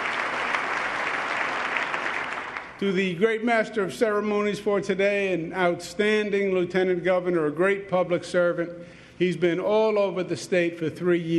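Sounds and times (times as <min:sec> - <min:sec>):
audience applause: 0:00.0 - 0:02.8
speech: 0:02.8 - 0:11.3.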